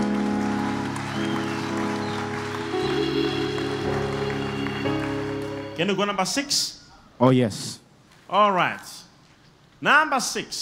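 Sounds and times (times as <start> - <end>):
crowd clapping: 0.0 - 6.4
sustained keyboard or organ tones: 0.0 - 6.9
speech: 5.8 - 9.0, 9.8 - 10.6.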